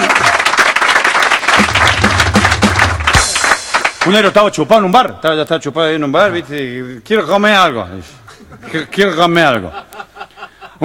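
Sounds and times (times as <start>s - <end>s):
audience applause: 0.0s - 4.1s
speech: 4.1s - 10.1s
laughter: 8.2s - 10.8s.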